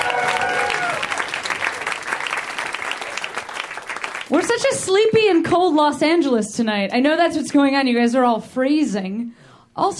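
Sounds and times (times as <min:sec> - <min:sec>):
whistle or cheer: 0:00.0 - 0:01.1
audience applause: 0:00.0 - 0:04.5
speech: 0:04.3 - 0:09.9.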